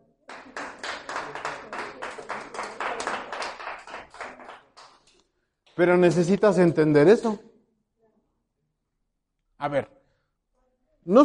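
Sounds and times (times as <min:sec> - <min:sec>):
audience applause: 0:00.3 - 0:05.0
speech: 0:05.8 - 0:07.5, 0:09.6 - 0:10.0, 0:11.0 - 0:11.2.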